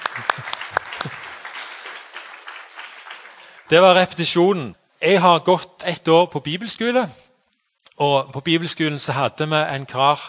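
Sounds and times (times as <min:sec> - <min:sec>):
audience applause: 0:00.0 - 0:03.7
speech: 0:03.7 - 0:07.2, 0:08.0 - 0:10.2.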